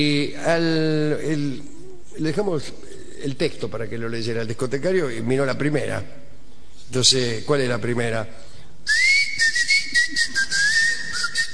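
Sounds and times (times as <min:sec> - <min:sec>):
speech: 0:00.0 - 0:06.2, 0:06.9 - 0:09.1
soft hiss: 0:00.0 - 0:11.5
person whistling a tango melody: 0:08.9 - 0:11.5.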